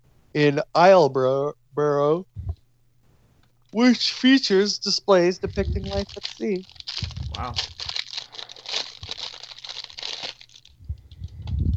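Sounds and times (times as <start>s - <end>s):
speech: 0.4s - 2.5s, 3.7s - 7.8s
crackling packaging wrapper: 3.2s - 11.6s.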